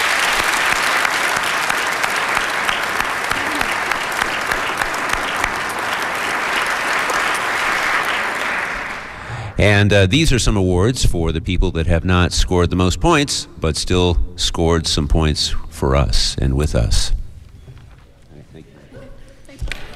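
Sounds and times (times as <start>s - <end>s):
audience round of applause: 0.0s - 9.5s
speech: 9.6s - 17.2s.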